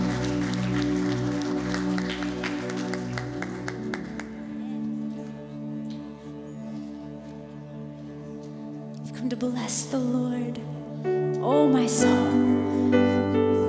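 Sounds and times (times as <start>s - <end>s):
audience hand clapping: 0.0s - 5.4s
speech: 9.3s - 13.2s.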